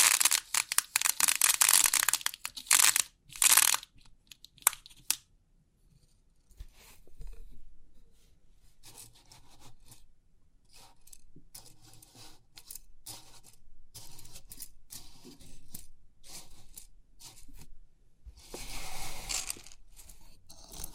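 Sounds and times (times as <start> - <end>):
3D pin art pins rattling: 0.0 - 5.2, 19.3 - 19.8.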